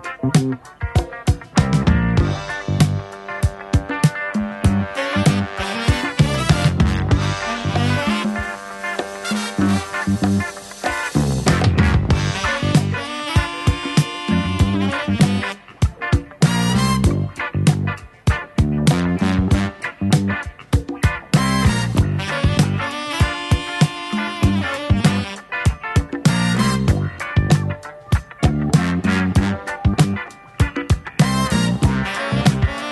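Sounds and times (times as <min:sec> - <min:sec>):
horn: 0:01.7 - 0:28.0, 0:28.6 - 0:32.9.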